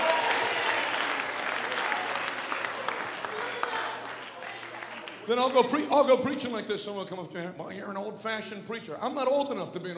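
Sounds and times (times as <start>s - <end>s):
church congregation in North Carolina clapping during a service: 0.0s - 6.1s
speech: 5.3s - 9.9s.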